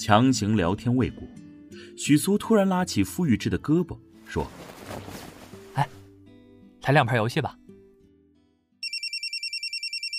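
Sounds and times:
speech: 0:00.0 - 0:01.4, 0:02.0 - 0:05.2, 0:06.9 - 0:07.6
electronic telephone ringtone for an incoming call: 0:08.8 - 0:10.1.

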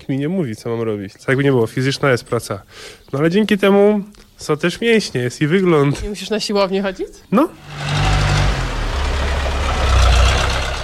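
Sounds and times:
speech: 0:00.1 - 0:08.1
tractor engine running: 0:07.6 - 0:10.8.

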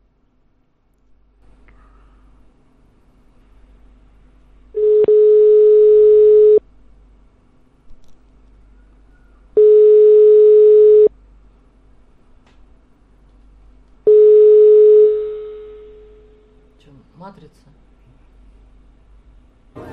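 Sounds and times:
telephone line buzzing beeps: 0:04.8 - 0:06.6, 0:09.6 - 0:11.1, 0:14.1 - 0:15.8.

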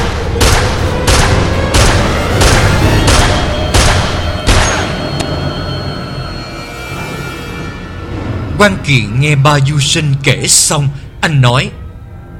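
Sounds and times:
gunshots from a police sniper: 0:00.0 - 0:05.0
speech: 0:08.6 - 0:11.8.

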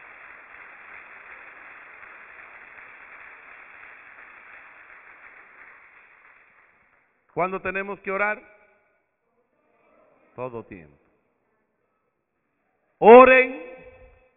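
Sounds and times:
audience applause: 0:00.0 - 0:07.2
speech: 0:07.4 - 0:08.6, 0:10.4 - 0:11.0, 0:13.0 - 0:13.6.

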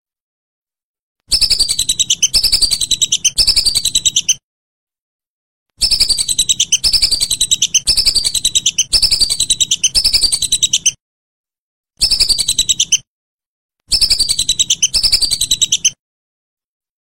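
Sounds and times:
whistling duck uttering shrill whistled notes: 0:01.3 - 0:04.4, 0:05.8 - 0:11.0, 0:12.0 - 0:13.0, 0:13.9 - 0:16.0.

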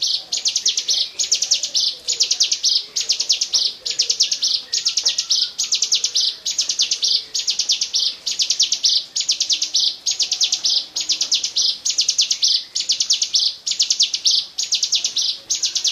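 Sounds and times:
bar-winged prinia singing buzzy chattering phrases: 0:00.0 - 0:15.8.

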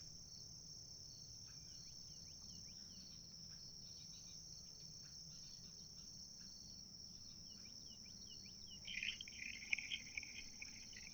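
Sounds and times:
chaffinch singing: 0:08.5 - 0:11.1.

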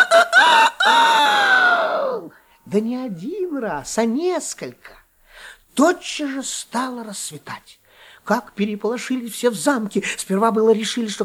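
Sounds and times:
rooster crowing in a fairy-tale scene at about 3 a.m.: 0:00.0 - 0:02.3
speech: 0:02.7 - 0:05.0, 0:05.8 - 0:11.2.

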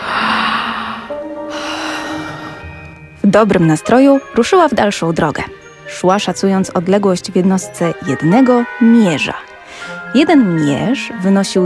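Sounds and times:
girl giving a big loud yawn: 0:00.0 - 0:02.6
speech: 0:03.3 - 0:11.6.

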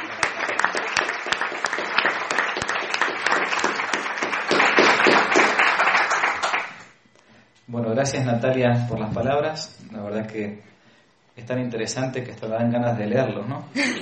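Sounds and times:
audience applause: 0:00.0 - 0:06.9
speech: 0:07.7 - 0:10.7, 0:11.4 - 0:14.0.

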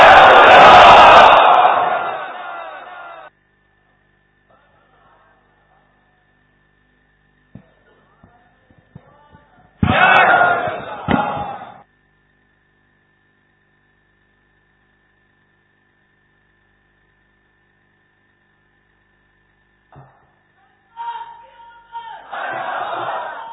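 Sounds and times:
crowd at a religious gathering chanting a slogan: 0:00.0 - 0:03.3, 0:09.8 - 0:11.8, 0:21.0 - 0:23.5.

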